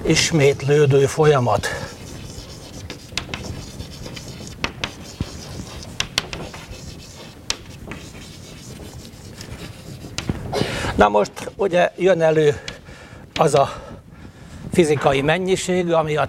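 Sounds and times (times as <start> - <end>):
speech: 0.1 - 1.9, 11.0 - 12.7, 13.4 - 13.8, 14.8 - 16.2
writing on a board: 0.1 - 10.5, 11.2 - 12.8, 13.4 - 13.7
sharp taps and clicks: 2.9 - 6.7, 7.4 - 8.1.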